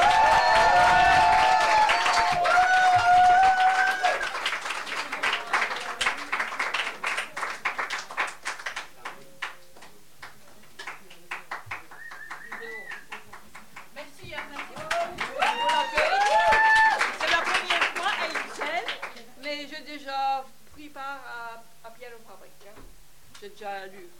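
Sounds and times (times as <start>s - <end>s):
audience applause: 0.0s - 19.2s.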